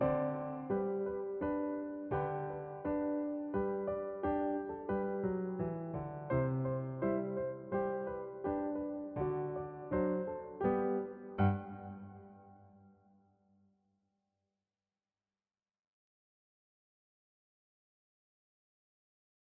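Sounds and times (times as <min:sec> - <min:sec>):
Christmas song: 0:00.0 - 0:12.8.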